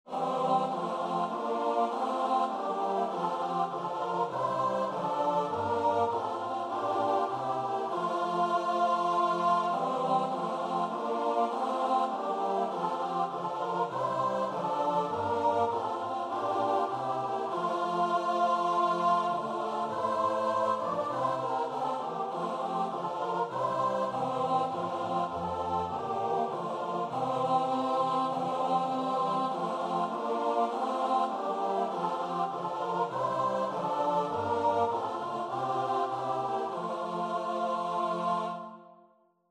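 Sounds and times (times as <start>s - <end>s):
choir singing: 0.0s - 39.4s.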